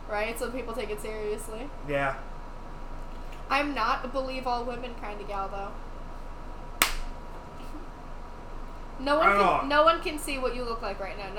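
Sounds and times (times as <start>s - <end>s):
speech: 0.1s - 2.4s, 3.5s - 5.9s, 9.0s - 11.3s
hands slapping together: 6.8s - 7.1s.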